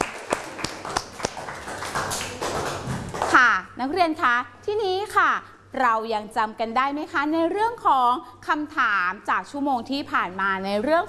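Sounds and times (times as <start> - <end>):
classroom applause: 0.0 - 3.4
speech: 3.8 - 11.0.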